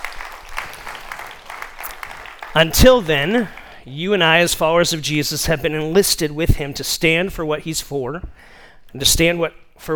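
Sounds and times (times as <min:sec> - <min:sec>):
audience clapping: 0:00.0 - 0:03.8
speech: 0:02.5 - 0:09.9.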